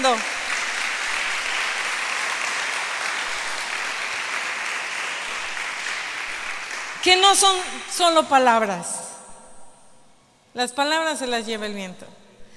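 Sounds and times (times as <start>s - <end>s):
speech: 0.0s - 0.4s, 7.0s - 9.0s, 10.6s - 12.2s
audience applause: 0.0s - 7.1s.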